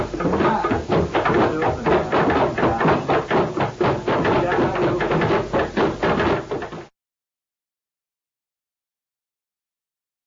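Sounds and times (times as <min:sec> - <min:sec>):
drum patterns: 0:00.0 - 0:06.9.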